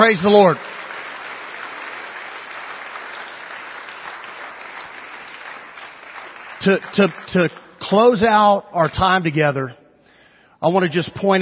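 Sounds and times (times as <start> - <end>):
speech: 0.0 - 0.7, 6.6 - 9.8, 10.6 - 11.4
audience applause: 0.0 - 7.6.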